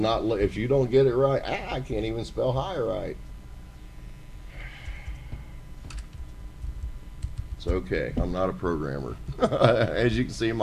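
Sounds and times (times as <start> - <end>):
speech: 0.0 - 3.3, 7.6 - 10.6
typing on a computer keyboard: 5.9 - 7.8
laughter: 9.3 - 10.2.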